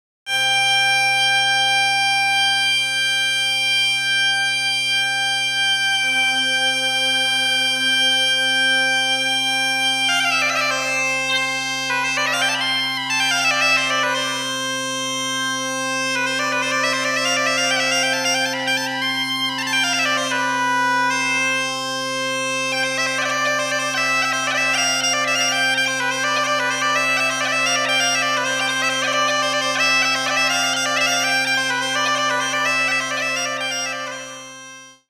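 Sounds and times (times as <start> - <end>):
gaita bagpipe: 0.3 - 35.0.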